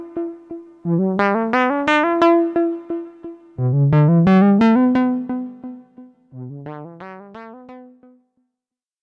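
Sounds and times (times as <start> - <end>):
synthesizer pulse width modulation tone: 0.9 - 7.3.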